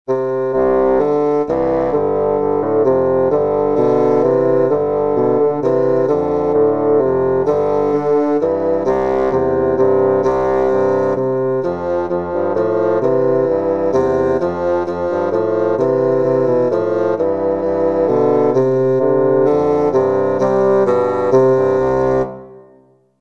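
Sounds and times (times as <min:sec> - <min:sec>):
bassoon: 0:00.1 - 0:23.0.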